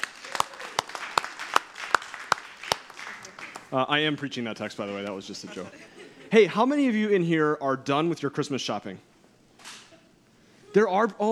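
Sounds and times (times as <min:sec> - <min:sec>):
audience applause: 0:00.0 - 0:03.9
speech: 0:03.7 - 0:09.1, 0:10.8 - 0:11.3
laughter: 0:04.8 - 0:06.8.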